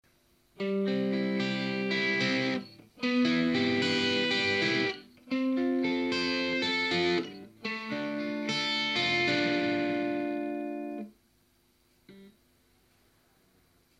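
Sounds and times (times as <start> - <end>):
arpeggio: 0.8 - 11.1.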